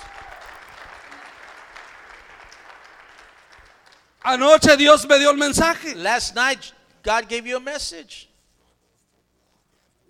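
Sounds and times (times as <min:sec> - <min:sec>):
audience applauding: 0:00.0 - 0:04.4
speech: 0:04.2 - 0:08.3.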